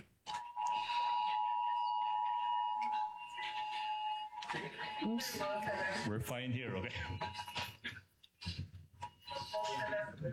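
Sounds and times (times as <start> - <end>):
multiple phones sounding emergency alert alarms together: 0.3 - 6.0
speech: 4.5 - 8.0, 9.6 - 10.3.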